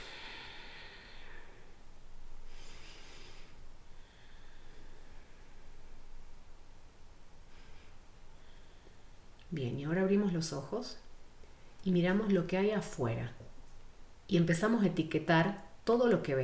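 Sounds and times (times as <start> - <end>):
slow deep breaths during a guided calming exercise: 0.0 - 6.3, 7.4 - 9.4
speech: 9.5 - 11.1, 11.8 - 13.5, 14.3 - 16.4.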